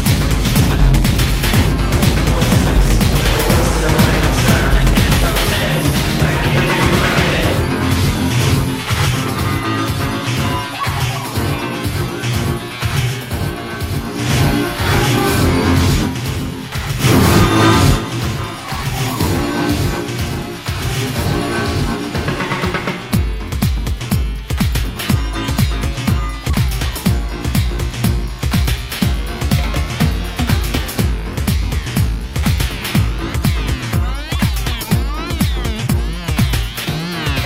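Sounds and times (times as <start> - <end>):
rhythm and noise digital hardcore music: 0.0 - 37.4.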